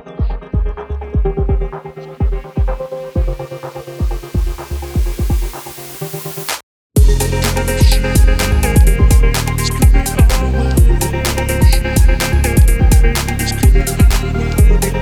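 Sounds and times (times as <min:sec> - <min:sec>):
sultry stutter house music: 0:00.0 - 0:15.0.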